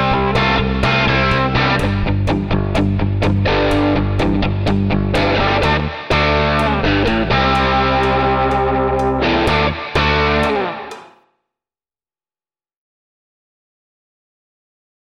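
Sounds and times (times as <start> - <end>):
guitar without drums: 0.0 - 11.3.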